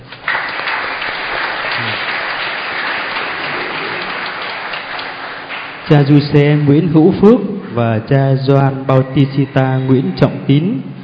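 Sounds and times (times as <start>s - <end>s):
audience applauding: 0.0s - 7.1s
speech: 5.9s - 10.9s.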